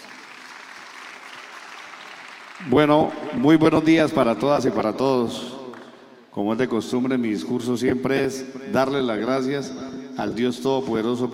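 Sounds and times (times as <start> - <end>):
strong audience applause: 0.0 - 3.1
speech: 2.6 - 5.6, 6.4 - 11.3.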